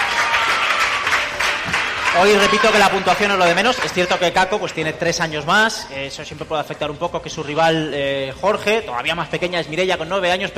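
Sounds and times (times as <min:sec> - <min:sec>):
crowd clapping: 0:00.0 - 0:05.1
speech: 0:02.2 - 0:10.5.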